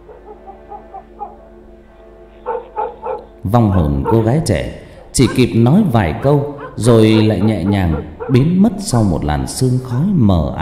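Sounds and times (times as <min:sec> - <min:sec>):
dogs barking loudly: 0:00.0 - 0:01.6, 0:02.4 - 0:09.1
speech: 0:03.4 - 0:10.5.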